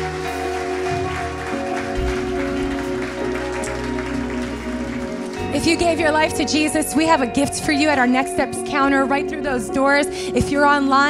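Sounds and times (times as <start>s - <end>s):
audience applauding: 0.0s - 8.2s
speech: 5.6s - 11.0s.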